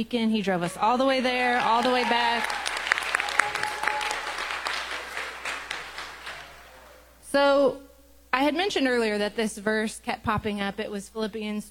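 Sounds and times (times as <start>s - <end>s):
speech: 0.0s - 2.7s, 7.4s - 7.8s, 8.4s - 11.6s
applause: 0.8s - 7.0s.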